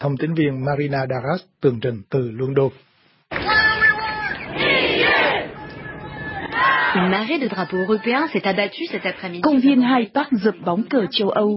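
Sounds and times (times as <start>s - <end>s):
speech: 0.0s - 3.6s, 7.0s - 11.5s
individual voices breaking out: 3.3s - 8.3s
large crowd of protesters chanting in unison: 3.4s - 7.1s.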